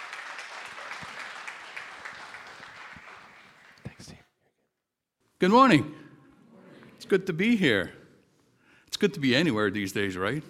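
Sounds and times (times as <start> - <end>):
sharp individual claps: 0.0 - 4.1
church congregation applauding a guest speaker: 0.0 - 4.2
speech: 5.4 - 6.0, 7.1 - 8.0, 9.0 - 10.4.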